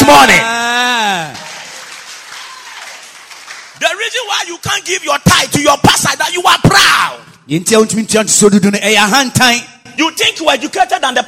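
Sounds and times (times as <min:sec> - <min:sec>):
speech: 0:00.1 - 0:01.4, 0:03.8 - 0:11.2
audience clapping: 0:01.2 - 0:04.1.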